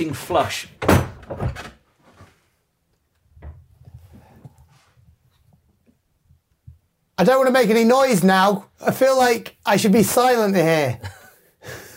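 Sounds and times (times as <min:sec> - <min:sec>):
speech: 0:00.0 - 0:01.7, 0:07.2 - 0:11.8
heavy wooden hatch thudding shut: 0:00.8 - 0:01.8.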